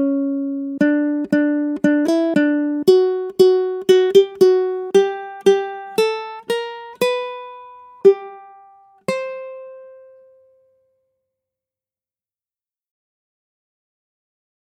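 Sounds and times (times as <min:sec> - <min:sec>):
ukulele accompaniment: 0:00.0 - 0:10.9.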